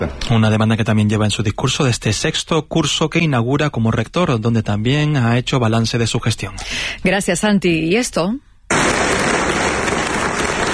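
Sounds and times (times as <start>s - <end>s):
speech: 0.0s - 9.0s
applause at a university ceremony: 8.7s - 10.7s.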